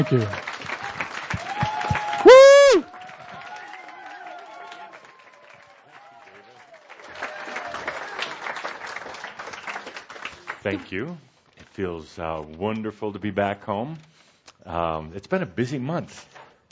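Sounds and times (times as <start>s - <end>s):
speech: 0.0s - 0.5s, 10.6s - 16.6s
warm audience applause: 0.0s - 11.0s.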